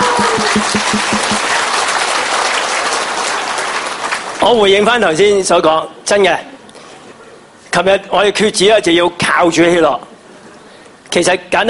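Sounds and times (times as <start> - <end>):
audience applause: 0.0 - 4.4
speech: 4.4 - 6.5, 7.7 - 10.1, 11.1 - 11.6.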